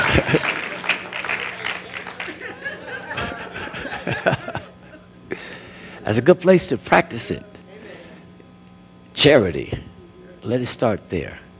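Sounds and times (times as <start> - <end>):
audience clapping: 0.0 - 3.9
laughter: 0.0 - 5.6
speech: 6.1 - 7.5, 9.2 - 11.4.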